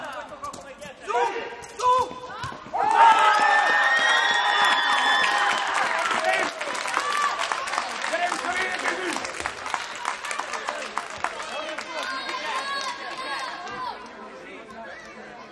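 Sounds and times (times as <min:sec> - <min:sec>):
excited crowd voices and cheers: 0:02.3 - 0:15.4
audience applause: 0:02.8 - 0:13.9.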